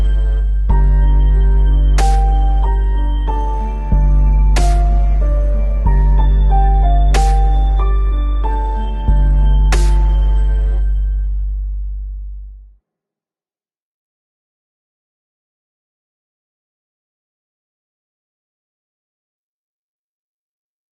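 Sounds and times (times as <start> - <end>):
piano: 0.0 - 12.6.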